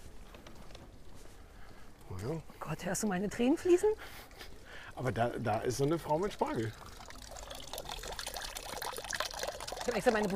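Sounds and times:
speech: 2.2 - 6.9, 9.9 - 10.3
water splashing and trickling from a small fountain: 5.0 - 10.3.

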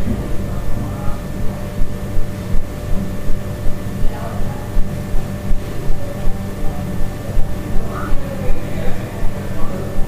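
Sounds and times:
low rumble in a hostel room in Central America: 0.0 - 4.2
faint brief murmurs or calls: 0.0 - 10.0
thin constant high whine: 0.0 - 10.0.

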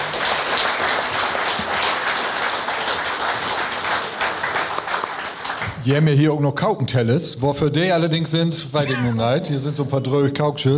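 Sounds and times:
audience applause: 0.0 - 5.8
speech: 5.8 - 10.7.

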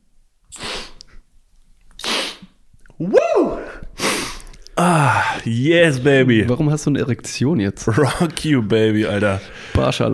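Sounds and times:
nasal spray being pumped: 0.5 - 1.0, 2.0 - 2.6
person sniffing nasal spray: 0.5 - 1.2, 2.0 - 2.6, 3.6 - 5.5
speech: 3.0 - 3.6, 4.8 - 10.1.

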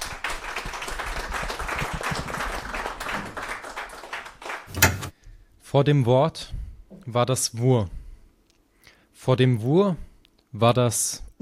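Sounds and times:
audience applause: 0.0 - 4.7
speech: 5.7 - 8.0, 9.2 - 11.4.

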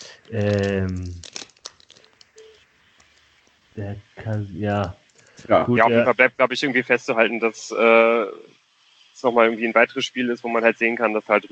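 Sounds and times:
voiced hum: 0.0 - 1.3, 2.2 - 11.5
crinkling and crackling: 0.0 - 5.5
speech: 0.3 - 1.3, 3.8 - 8.6, 9.2 - 11.5.

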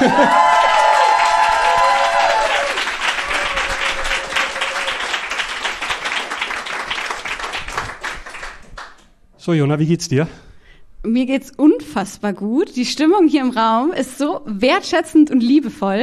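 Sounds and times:
loud audience whoops: 0.0 - 6.4
audience clapping at a campaign event: 0.0 - 9.2
speech: 9.5 - 16.0.

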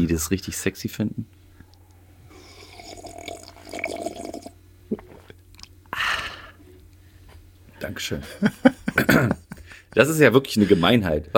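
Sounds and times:
speech: 0.0 - 1.4, 7.8 - 9.4, 10.0 - 11.3
person sipping coffee: 1.6 - 5.7
soft wet mouth and swallowing noises: 1.7 - 5.8
loud slurping burst: 2.3 - 5.7.

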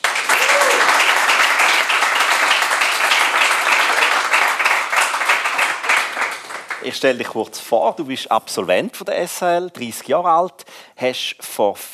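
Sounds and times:
audience applause for guest: 0.0 - 7.1
speech: 6.9 - 11.9.

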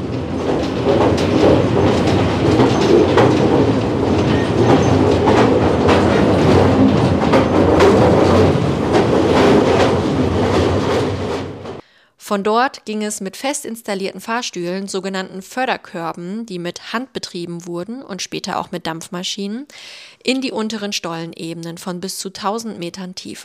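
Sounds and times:
mine train rolling on rails: 0.0 - 11.8
mine train wheels clacking over track joints: 0.0 - 11.8
speech: 12.3 - 23.4.

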